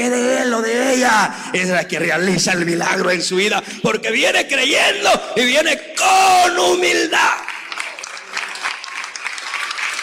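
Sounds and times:
speech: 0:00.0 - 0:07.5
audience applause: 0:07.4 - 0:10.0.

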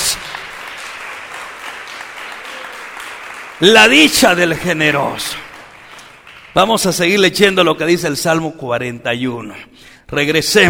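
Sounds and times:
crowd clapping: 0:00.0 - 0:07.3
speech: 0:03.6 - 0:05.5, 0:06.6 - 0:10.6.

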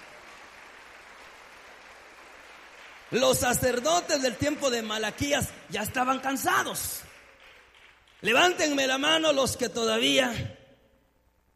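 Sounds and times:
audience applauding: 0:00.0 - 0:09.0
speech: 0:03.1 - 0:07.1, 0:08.2 - 0:10.6.

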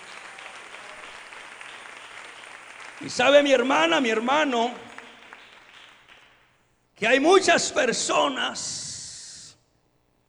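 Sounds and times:
audience applause: 0:00.0 - 0:06.6
speech: 0:03.0 - 0:04.8, 0:07.0 - 0:08.9.

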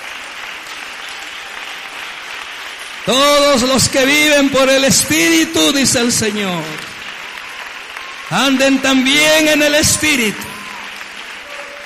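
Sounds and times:
audience applauding: 0:00.0 - 0:11.8
speech: 0:03.1 - 0:06.9, 0:08.3 - 0:10.5.

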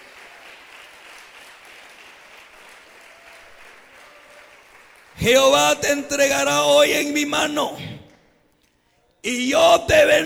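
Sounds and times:
audience applauding: 0:00.0 - 0:06.3
speech: 0:05.2 - 0:07.9, 0:09.2 - 0:10.2.

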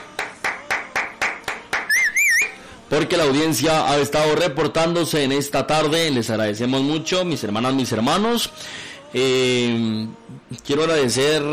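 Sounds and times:
hand claps during a worship gathering: 0:00.0 - 0:02.4
high whistle-like tone: 0:01.9 - 0:02.6
speech: 0:02.9 - 0:11.5.

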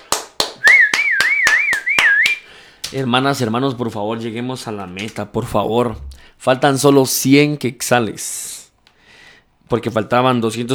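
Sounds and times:
rhythmic clapping in a church service: 0:00.0 - 0:04.0
speech: 0:02.9 - 0:08.5, 0:09.7 - 0:10.7.

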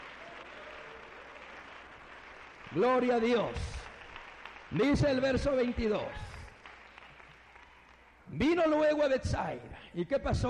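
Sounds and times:
audience applauding: 0:00.0 - 0:08.2
speech: 0:02.7 - 0:03.8, 0:04.7 - 0:06.3, 0:08.4 - 0:10.4.

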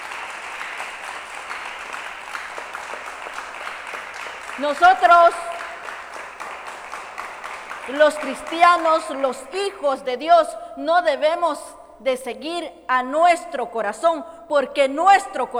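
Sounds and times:
audience clapping: 0:00.0 - 0:09.8
man speaking loudly: 0:04.6 - 0:05.5
speech: 0:04.6 - 0:05.5, 0:07.9 - 0:15.5.

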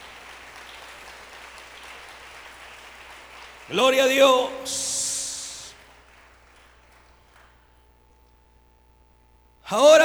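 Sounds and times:
audience applause: 0:00.0 - 0:07.6
speech: 0:03.7 - 0:04.9, 0:09.7 - 0:10.0.

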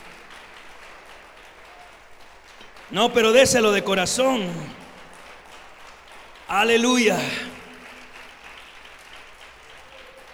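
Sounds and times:
church congregation applauding: 0:00.0 - 0:10.3
speech: 0:02.9 - 0:04.8, 0:06.5 - 0:07.5.

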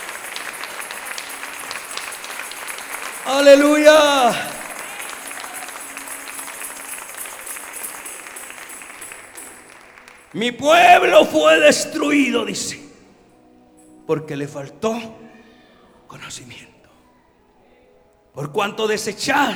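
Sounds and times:
audience applause: 0:00.0 - 0:11.7
speech: 0:03.3 - 0:04.5, 0:10.3 - 0:12.9, 0:14.1 - 0:15.2, 0:16.1 - 0:16.8, 0:18.4 - 0:19.5.

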